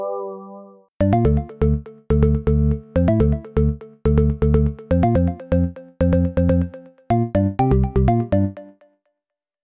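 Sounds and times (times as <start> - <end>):
deep house music: 1.0 - 8.6.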